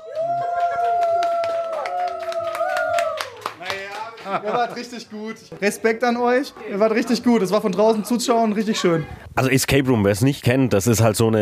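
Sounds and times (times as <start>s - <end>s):
high whooping shout: 0.0s - 3.4s
excited cheering: 0.0s - 4.9s
small group clapping: 0.0s - 5.8s
laughter: 3.9s - 5.4s
speech: 4.3s - 11.3s.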